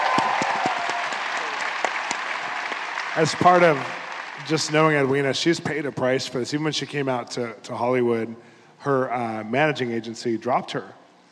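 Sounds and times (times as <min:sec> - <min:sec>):
audience clapping: 0:00.0 - 0:05.3
speech: 0:03.2 - 0:11.0.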